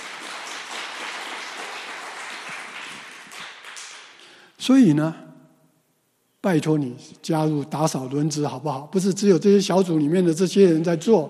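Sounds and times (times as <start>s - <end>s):
audience clapping: 0.0s - 4.4s
speech: 4.6s - 5.2s, 6.4s - 11.2s.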